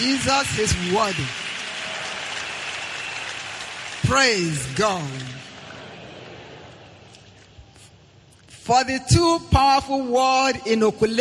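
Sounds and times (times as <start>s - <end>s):
speech: 0.0s - 1.4s, 4.1s - 5.4s, 8.7s - 11.2s
audience clapping: 0.0s - 6.8s.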